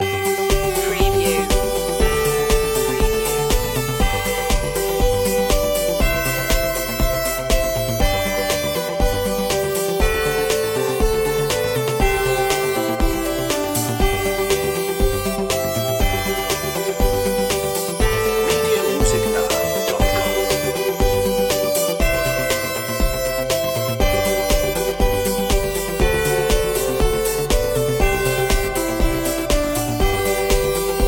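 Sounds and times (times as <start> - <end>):
synthesized folk tune melody: 0.0 - 31.0.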